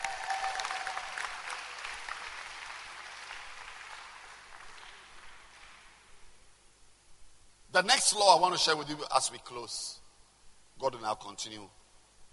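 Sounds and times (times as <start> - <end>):
audience applause: 0.0 - 6.0
speech: 7.8 - 10.0, 10.8 - 11.8.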